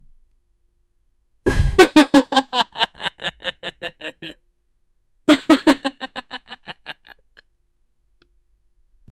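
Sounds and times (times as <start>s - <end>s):
person giggling: 1.5s - 4.4s, 5.3s - 7.4s.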